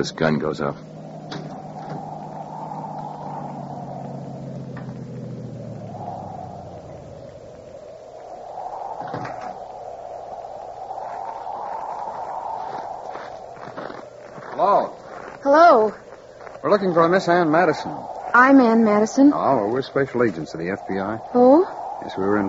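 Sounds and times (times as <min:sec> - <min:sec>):
speech: 0:00.0 - 0:01.4, 0:16.7 - 0:22.4
car driving up to the house: 0:01.3 - 0:07.5.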